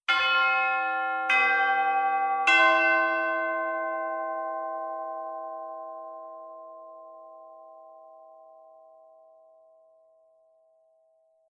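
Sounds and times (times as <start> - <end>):
chime: 0.1 - 11.4.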